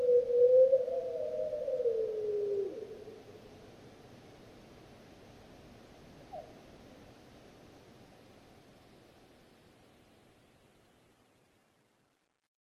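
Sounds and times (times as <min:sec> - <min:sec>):
lone wolf howling: 0:00.0 - 0:03.0.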